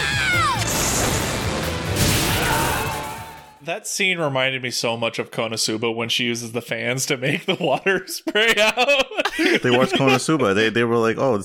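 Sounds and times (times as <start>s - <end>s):
lightning strike thunderbolt effect: 0.6s - 3.5s
speech: 3.7s - 11.4s
laughter: 7.3s - 10.6s.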